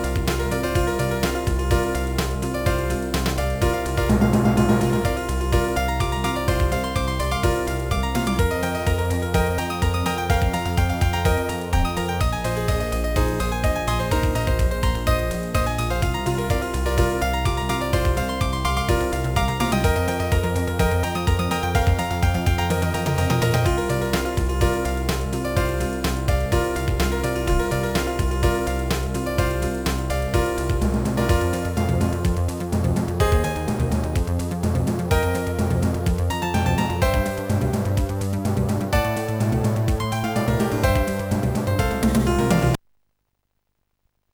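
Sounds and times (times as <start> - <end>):
piano playing: 0.0 - 42.8.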